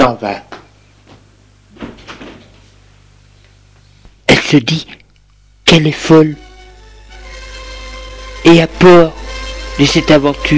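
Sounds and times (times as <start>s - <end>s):
speech: 0.0s - 0.6s, 4.5s - 5.0s, 5.7s - 6.4s, 8.4s - 9.2s, 9.8s - 10.5s
door opening: 1.8s - 2.7s.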